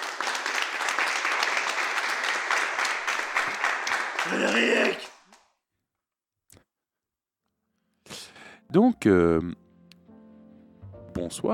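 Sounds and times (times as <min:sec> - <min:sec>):
applause: 0:00.0 - 0:05.5
speech: 0:04.3 - 0:05.1, 0:08.7 - 0:09.6, 0:11.2 - 0:11.5.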